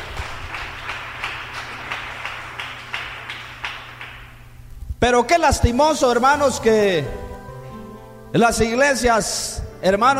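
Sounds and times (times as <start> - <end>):
audience clapping in unison: 0.0 - 4.6
low hum: 0.0 - 10.1
speech: 5.0 - 7.2, 8.3 - 10.1.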